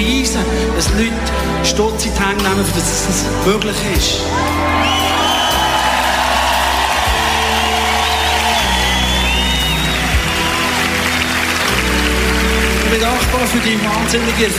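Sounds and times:
speech: 0.0 - 5.2, 12.9 - 14.5
audience applause: 4.4 - 14.5.

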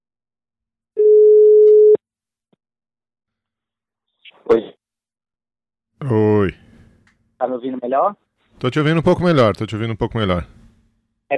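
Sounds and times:
telephone call tone while redialing: 1.0 - 2.0
speech: 4.5 - 4.7, 6.0 - 6.6, 7.4 - 10.6.

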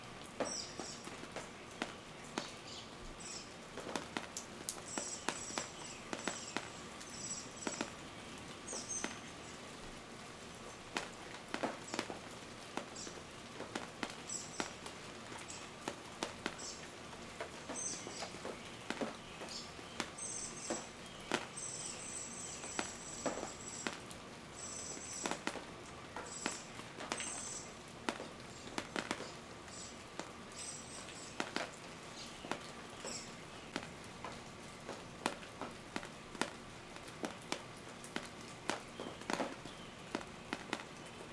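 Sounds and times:
rain dripping: 0.0 - 41.3
birds: 0.4 - 3.6, 4.8 - 9.8, 14.1 - 25.5, 26.1 - 27.8, 28.4 - 35.0, 38.7 - 41.3.

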